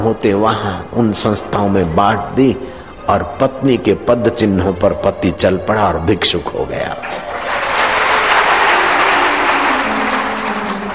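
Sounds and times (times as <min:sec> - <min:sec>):
speech: 0:00.0 - 0:07.4
audience clapping: 0:07.0 - 0:10.9.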